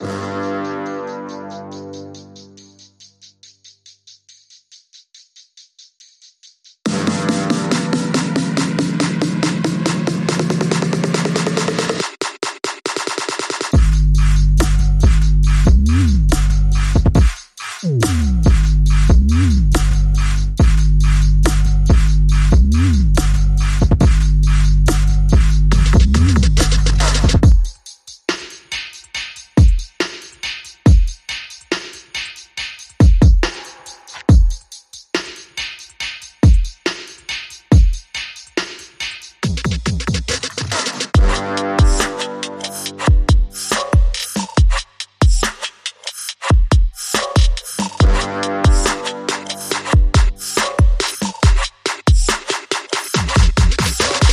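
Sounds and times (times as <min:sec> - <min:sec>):
drums: 0:00.0 - 0:54.3.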